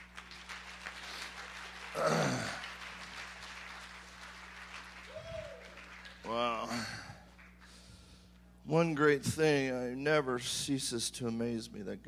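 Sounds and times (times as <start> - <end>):
audience clapping: 0.0 - 7.9
speech: 2.0 - 2.2, 8.7 - 12.0.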